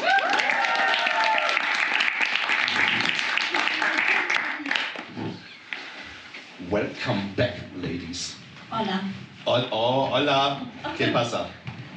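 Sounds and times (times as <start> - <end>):
audience applause for guests on stage: 0.0 - 5.1
speech: 6.8 - 11.6.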